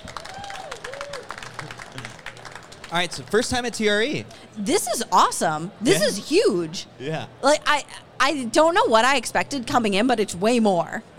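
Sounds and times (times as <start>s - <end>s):
audience applause: 0.0s - 3.6s
speech: 2.9s - 11.1s.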